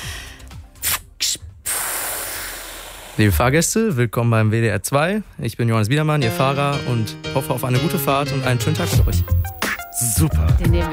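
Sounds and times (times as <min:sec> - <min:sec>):
voice imitating hiss of a bus kneeling: 0:00.0 - 0:03.2
speech: 0:03.2 - 0:10.9.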